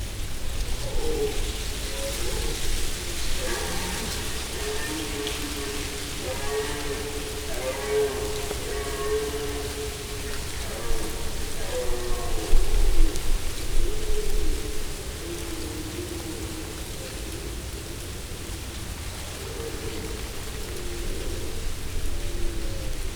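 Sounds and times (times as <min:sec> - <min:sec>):
leaves: 0:00.0 - 0:23.1
red deer stags roaring: 0:02.1 - 0:13.3.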